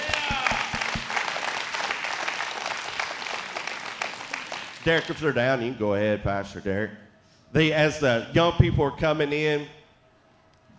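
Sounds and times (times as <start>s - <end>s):
hand clapping: 0.0s - 5.2s
speech: 4.8s - 9.8s.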